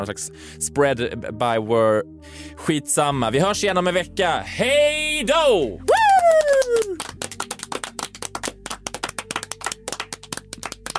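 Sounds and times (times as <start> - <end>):
speech: 0.0 - 6.4
loud applause: 5.9 - 10.9.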